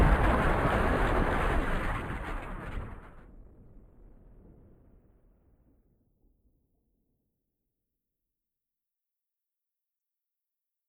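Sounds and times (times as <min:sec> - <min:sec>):
glacier collapse: 0:00.0 - 0:04.0.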